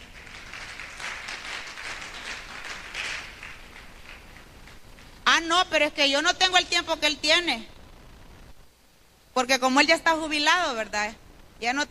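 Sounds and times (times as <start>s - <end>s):
audience applause: 0.0s - 4.8s
speech: 5.4s - 7.7s, 9.4s - 11.8s.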